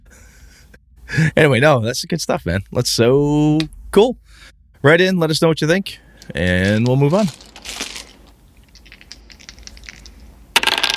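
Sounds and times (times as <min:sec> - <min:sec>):
speech: 0:01.1 - 0:07.5
dice rolling sound effect: 0:06.6 - 0:10.9.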